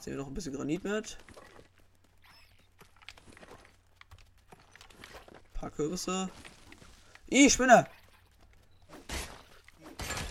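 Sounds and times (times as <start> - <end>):
speech: 0.0 - 1.6, 5.6 - 6.5, 7.3 - 8.0
axe breaking in a video game while chopping trees: 9.1 - 10.2.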